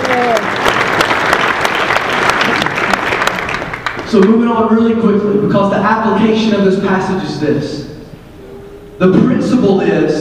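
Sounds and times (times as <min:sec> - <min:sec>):
crowd applause: 0:00.0 - 0:04.1
speech: 0:04.1 - 0:07.8, 0:09.0 - 0:10.1
brief vocal tone: 0:08.4 - 0:09.1.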